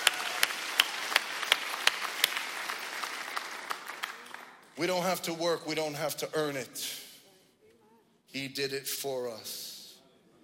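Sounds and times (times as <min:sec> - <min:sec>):
audience applause: 0:00.0 - 0:04.7
speech: 0:04.8 - 0:07.0, 0:08.3 - 0:09.7.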